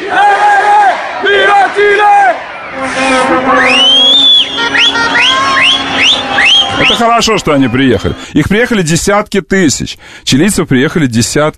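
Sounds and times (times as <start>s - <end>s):
large crowd of football fans chanting in unison: 0.0s - 8.3s
whistles: 2.5s - 8.2s
speech: 7.0s - 11.5s.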